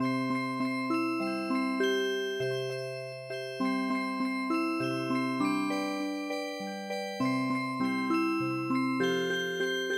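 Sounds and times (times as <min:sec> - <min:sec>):
traditional music box: 0:00.0 - 0:09.9.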